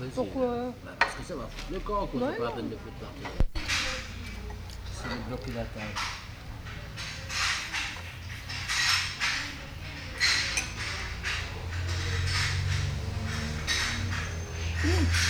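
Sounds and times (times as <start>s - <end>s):
speech: 0.1s - 3.7s, 5.0s - 6.2s
jaws clacking while eating a croque-monsieur: 3.5s - 15.2s.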